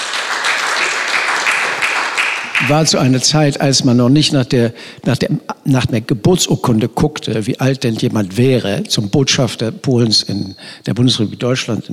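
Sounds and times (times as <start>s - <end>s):
crowd applauding: 0.0s - 3.2s
speech: 2.7s - 11.9s.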